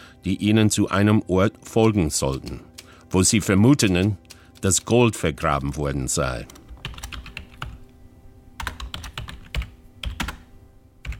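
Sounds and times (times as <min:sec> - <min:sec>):
speech: 0:00.2 - 0:06.6
typing a message on a computer keyboard: 0:01.8 - 0:07.9, 0:08.6 - 0:11.1.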